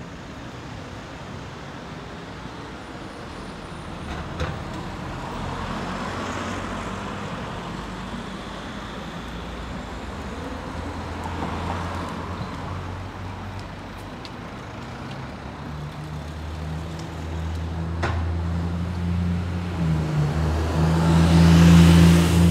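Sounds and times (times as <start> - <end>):
street ambience on a walk: 0.0 - 22.4.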